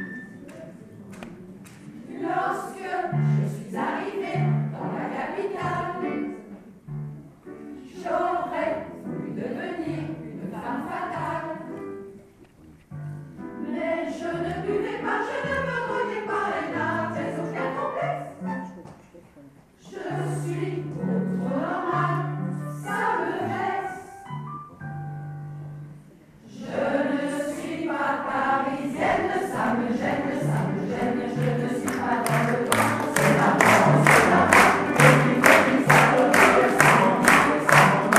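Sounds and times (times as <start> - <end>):
vocal ensemble singing: 2.0 - 6.4, 7.8 - 11.7, 13.5 - 18.3, 19.8 - 24.3, 26.4 - 38.1.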